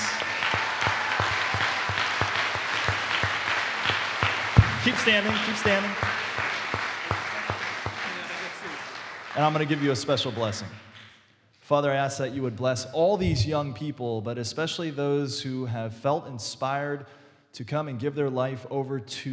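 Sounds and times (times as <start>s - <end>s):
sustained crowd applause: 0.0s - 11.0s
speech: 4.8s - 6.3s, 9.4s - 10.8s, 11.7s - 19.3s.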